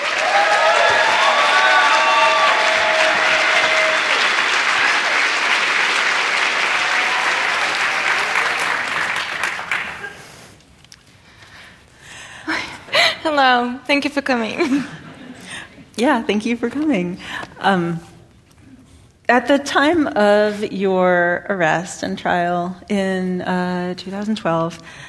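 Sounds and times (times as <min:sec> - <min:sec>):
audience applause welcoming two speakers at an author event: 0:00.0 - 0:10.4
speech: 0:13.4 - 0:15.0, 0:16.0 - 0:18.1, 0:19.3 - 0:25.0.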